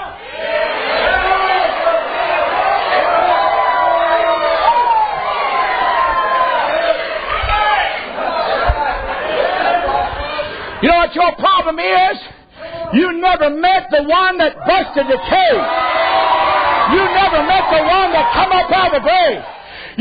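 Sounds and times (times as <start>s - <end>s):
audience shouting and praising: 0.0s - 10.8s, 14.6s - 19.7s
speech: 11.2s - 15.8s, 16.9s - 19.9s.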